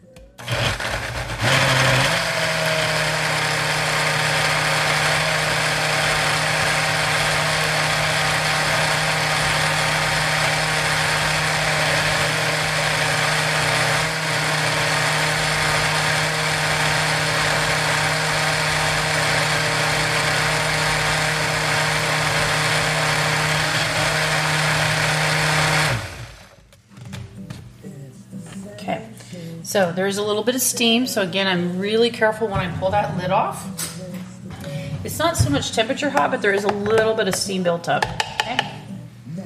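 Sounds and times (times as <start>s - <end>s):
blender blending food: 0.4s - 26.6s
speech: 29.8s - 33.8s, 35.0s - 38.2s.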